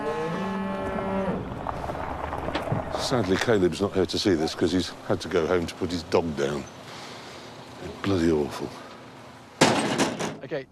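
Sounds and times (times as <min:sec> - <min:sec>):
calf mooing: 0:00.0 - 0:01.5
steady rumble: 0:00.7 - 0:05.1
speech: 0:03.0 - 0:06.8, 0:08.0 - 0:08.8, 0:10.5 - 0:10.7.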